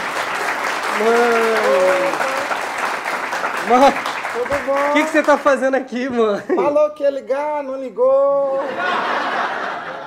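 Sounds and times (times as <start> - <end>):
applause: 0.0 - 5.7
speech: 1.0 - 1.8, 3.6 - 9.5
laughter: 8.5 - 10.0.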